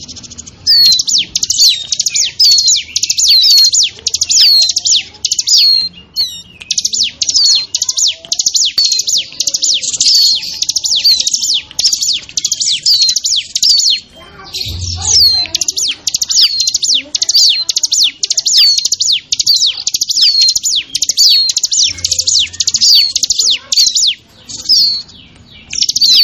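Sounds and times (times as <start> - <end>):
bar-winged prinia singing buzzy stuttering phrases: 0.0 - 26.2.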